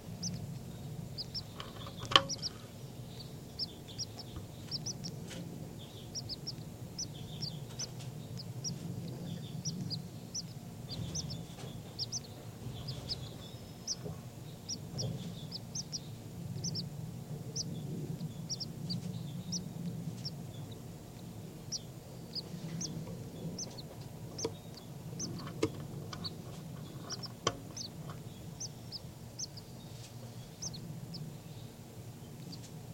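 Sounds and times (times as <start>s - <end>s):
baby birds calling: 0.0s - 32.9s
low rumble: 0.0s - 32.9s.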